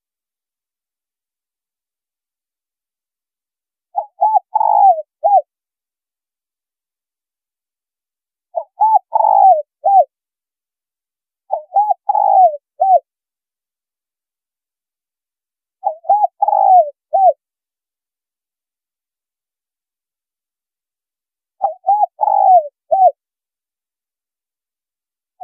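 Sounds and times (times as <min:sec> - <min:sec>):
spotted dove cooing: 0:03.9 - 0:05.5, 0:08.5 - 0:10.1, 0:11.5 - 0:13.0, 0:15.8 - 0:17.4, 0:21.6 - 0:23.2.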